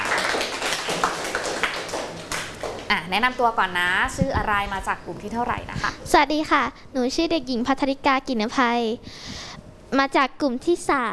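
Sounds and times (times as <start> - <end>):
students clapping for classmates: 0.0 - 2.9
speech: 3.1 - 11.1.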